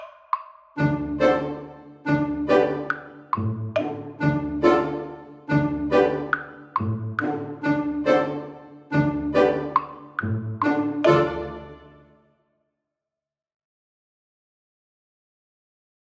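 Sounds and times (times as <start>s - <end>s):
creeping suspenseful music: 0.8s - 12.2s.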